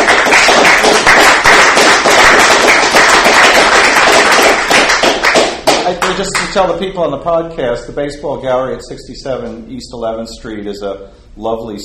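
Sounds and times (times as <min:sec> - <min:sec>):
audience applause: 0:00.0 - 0:06.5
speech: 0:06.2 - 0:11.8.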